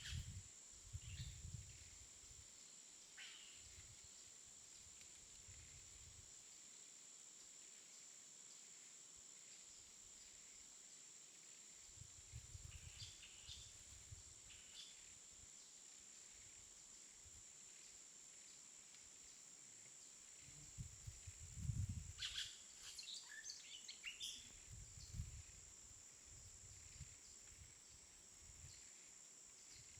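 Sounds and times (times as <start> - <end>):
jungle ambience in the afternoon: 0.0 - 29.9.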